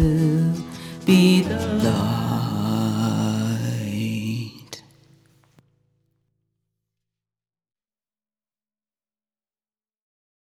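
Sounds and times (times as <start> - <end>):
bass: 0.0 - 4.8
choir singing: 1.0 - 4.7.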